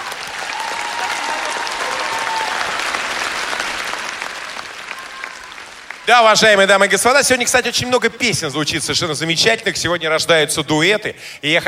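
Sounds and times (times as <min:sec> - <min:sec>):
audience applause: 0:00.0 - 0:06.8
speech: 0:06.1 - 0:11.6.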